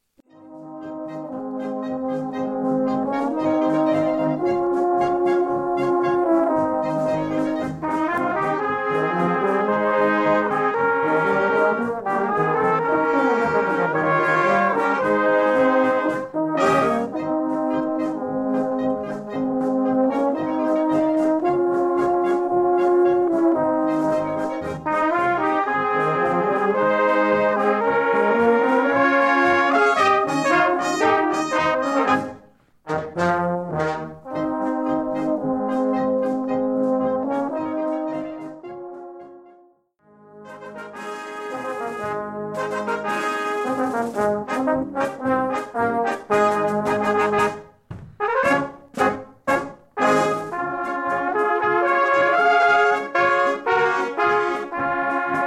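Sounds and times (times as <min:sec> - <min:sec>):
polka music: 0:00.1 - 0:55.4.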